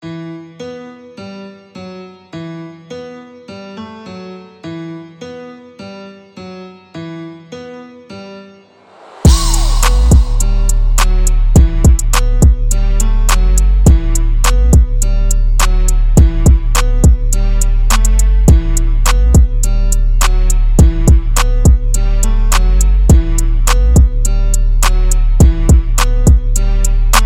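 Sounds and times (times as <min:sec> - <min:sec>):
music beat: 0:08.8 - 0:27.2.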